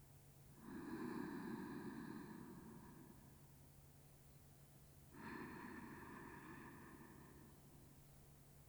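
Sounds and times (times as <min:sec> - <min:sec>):
sleep breathing on the left side: 0:00.6 - 0:03.6, 0:05.1 - 0:08.0.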